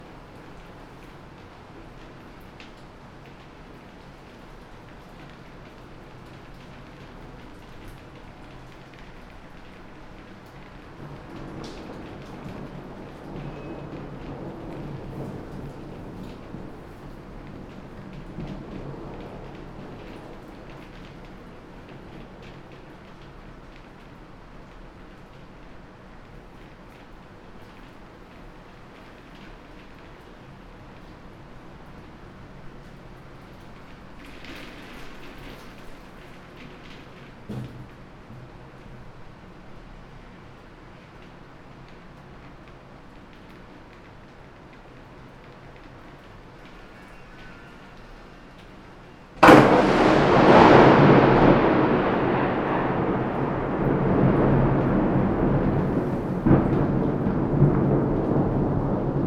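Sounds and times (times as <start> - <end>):
lightning strike: 49.4 - 59.2.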